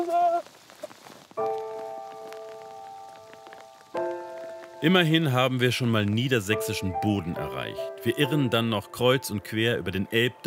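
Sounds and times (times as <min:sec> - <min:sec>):
rain pattering on a hard surface: 0:00.0 - 0:07.6
speech: 0:04.8 - 0:10.4.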